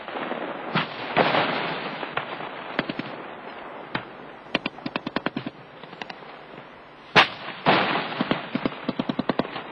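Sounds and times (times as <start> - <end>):
booming explosions: 0.0 - 9.7
battle gunfire bursts: 0.7 - 3.3, 3.9 - 6.2, 7.1 - 9.7.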